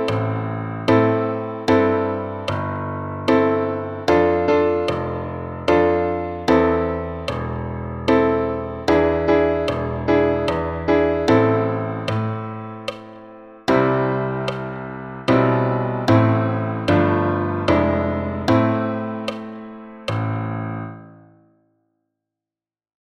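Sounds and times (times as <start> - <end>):
piano at 75 bpm: 0.0 - 21.8.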